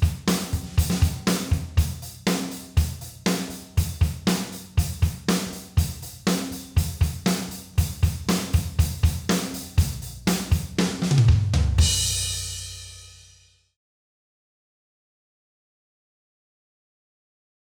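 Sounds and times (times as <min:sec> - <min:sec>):
drums: 0:00.0 - 0:13.6.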